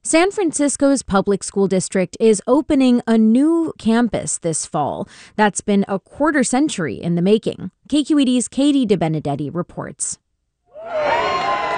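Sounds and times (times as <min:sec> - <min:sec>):
speech: 0:00.1 - 0:10.2, 0:10.8 - 0:11.3
TK and kindergarten students cheering at a new school in Mission Bay, San Francisco: 0:10.8 - 0:11.7.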